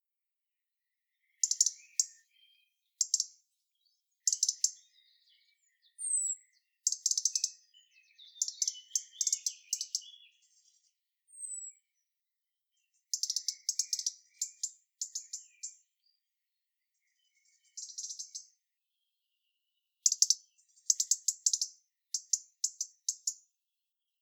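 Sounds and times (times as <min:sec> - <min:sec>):
European robin tick calls: 0:01.2 - 0:03.4, 0:04.2 - 0:11.8, 0:13.0 - 0:15.8, 0:17.0 - 0:18.6, 0:20.0 - 0:23.5.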